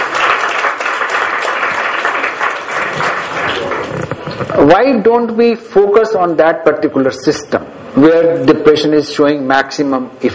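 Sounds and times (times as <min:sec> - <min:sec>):
audience clapping: 0:00.0 - 0:04.2
speech: 0:04.6 - 0:10.3.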